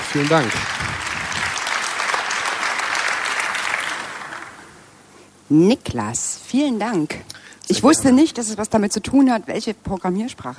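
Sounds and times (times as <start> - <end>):
audience applause: 0.0 - 4.8
speech: 0.1 - 0.8, 5.5 - 10.5.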